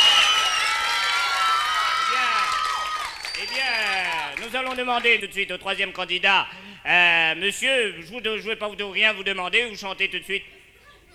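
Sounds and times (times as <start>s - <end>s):
crowd cheering and whooping: 0.0s - 4.1s
crowd applauding: 0.0s - 5.2s
speech: 4.5s - 10.5s.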